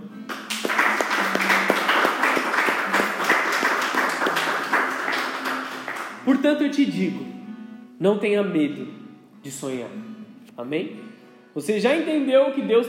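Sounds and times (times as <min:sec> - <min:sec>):
crowd applauding: 0:00.3 - 0:06.4
speech: 0:06.3 - 0:07.4, 0:08.0 - 0:12.8.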